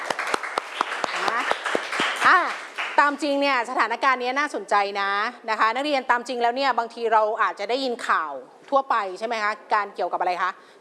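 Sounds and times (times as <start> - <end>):
classroom applause: 0.0 - 3.0
speech: 2.3 - 10.7.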